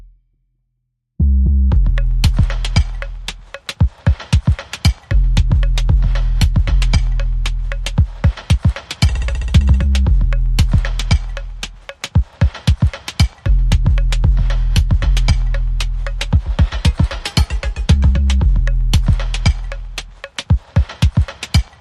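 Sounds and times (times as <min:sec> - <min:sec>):
bass: 0:00.0 - 0:00.3, 0:01.2 - 0:03.6, 0:05.1 - 0:08.3, 0:09.0 - 0:11.9, 0:13.5 - 0:16.8, 0:17.6 - 0:20.2
drums: 0:01.7 - 0:21.8.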